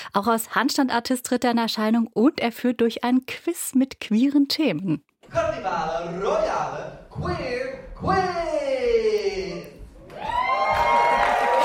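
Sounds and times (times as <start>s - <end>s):
speech: 0.2s - 8.5s
enthusiastic audience cheering and whooping: 10.0s - 11.6s.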